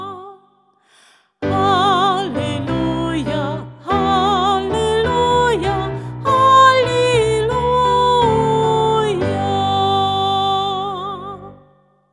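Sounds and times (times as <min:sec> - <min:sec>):
choral hymn singing: 0:01.5 - 0:11.2.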